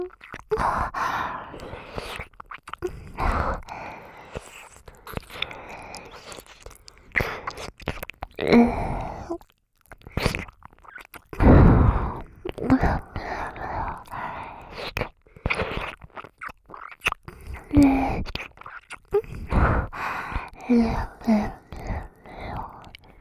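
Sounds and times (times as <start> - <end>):
breathy sighs and gasps: 0.0 - 7.6, 8.4 - 9.4, 11.4 - 15.6, 17.3 - 18.3, 19.1 - 23.1
ASMR ear-eating mouth sounds: 0.0 - 23.1.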